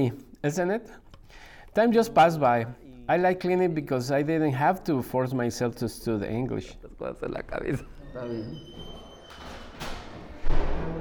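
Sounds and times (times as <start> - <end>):
speech: 0.0 - 9.0
doors slamming in a stairwell: 8.6 - 10.9.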